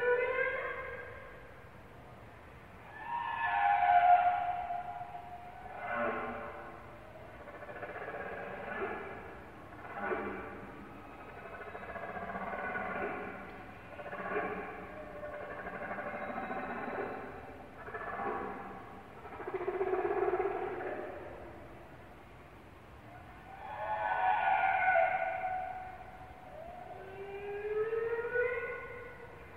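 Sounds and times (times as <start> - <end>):
humpback whales: 2.9 - 21.0, 23.5 - 29.4.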